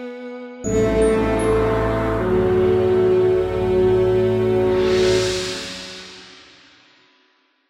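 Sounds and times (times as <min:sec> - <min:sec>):
lounge music intro: 0:00.7 - 0:06.7.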